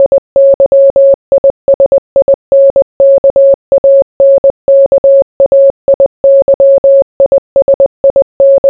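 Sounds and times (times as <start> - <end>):
morse code beeps: 0.0 - 8.6.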